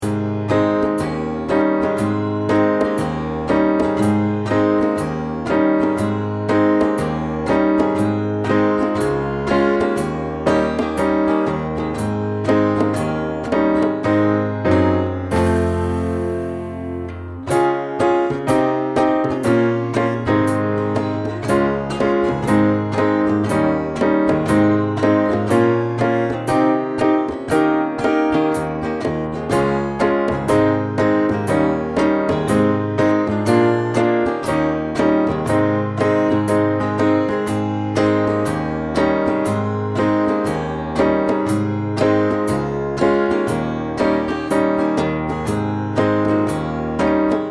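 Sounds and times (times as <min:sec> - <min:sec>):
instrumental music: 0:00.0 - 0:47.4.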